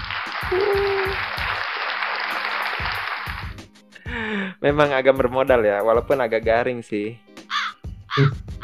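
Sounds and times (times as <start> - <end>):
cheering: 0.0 - 3.4
crowd clapping: 0.0 - 3.7
speech: 0.5 - 1.0, 4.6 - 7.2, 8.2 - 8.4.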